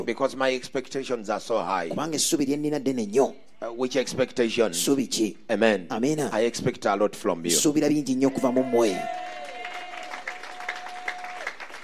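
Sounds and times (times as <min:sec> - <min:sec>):
speech: 0:00.0 - 0:09.3
audience clapping: 0:08.7 - 0:11.8.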